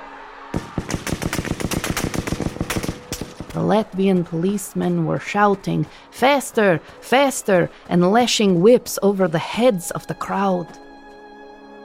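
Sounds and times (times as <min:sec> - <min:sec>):
automatic gunfire fired into a marching crowd: 0:00.6 - 0:03.6
speech: 0:03.6 - 0:10.8.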